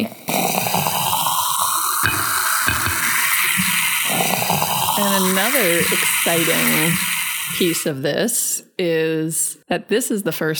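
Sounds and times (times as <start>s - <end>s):
fizzy bubbly drink pouring: 0.0s - 7.9s
speech: 5.0s - 10.5s.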